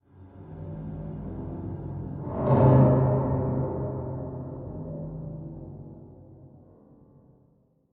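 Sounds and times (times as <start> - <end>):
ambient mystery music: 0.1 - 7.0.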